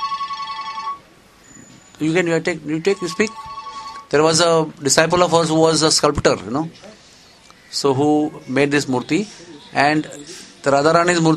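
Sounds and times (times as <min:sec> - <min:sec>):
telephone electronic ringtone of rapid high beeps: 0:00.0 - 0:01.1, 0:02.8 - 0:04.2
speech: 0:02.0 - 0:03.5, 0:04.1 - 0:07.0, 0:07.7 - 0:11.3.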